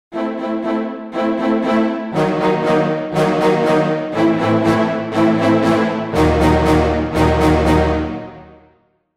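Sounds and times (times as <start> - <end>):
action music tritone: 0.1 - 8.6.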